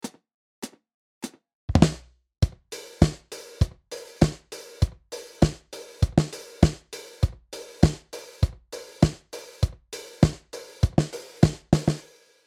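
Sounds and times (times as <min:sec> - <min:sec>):
vintage dry disco drum kit: 0:01.8 - 0:12.2.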